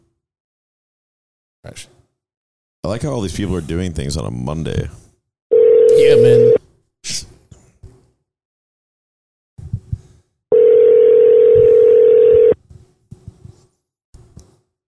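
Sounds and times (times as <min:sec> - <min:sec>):
speech: 0:01.6 - 0:02.0, 0:02.8 - 0:05.0, 0:06.0 - 0:07.4
phone call ringing tone: 0:05.5 - 0:06.6, 0:10.5 - 0:12.6.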